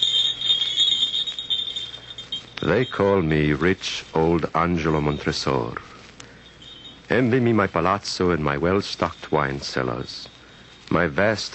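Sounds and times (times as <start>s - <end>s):
jingling jester's bells: 0.0s - 11.5s
speech: 2.6s - 6.0s, 7.1s - 11.5s.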